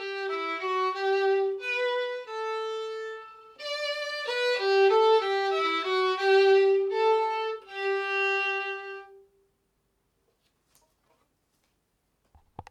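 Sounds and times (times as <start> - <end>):
violin: 0.0 - 9.3.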